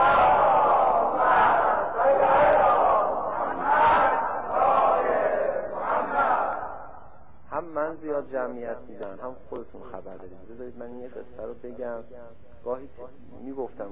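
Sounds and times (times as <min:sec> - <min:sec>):
large crowd loudly chanting salawat in unison: 0:00.0 - 0:07.3
speech: 0:08.2 - 0:13.9.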